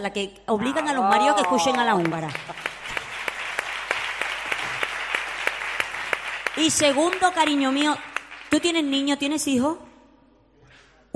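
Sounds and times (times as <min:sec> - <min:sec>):
speech: 0:00.0 - 0:02.6, 0:06.6 - 0:09.9
audience applause: 0:01.0 - 0:08.6.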